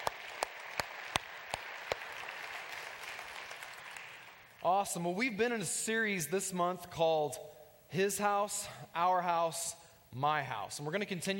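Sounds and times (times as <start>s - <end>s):
church congregation applauding to welcome newcomers: 0.0s - 4.8s
speech: 4.6s - 11.3s.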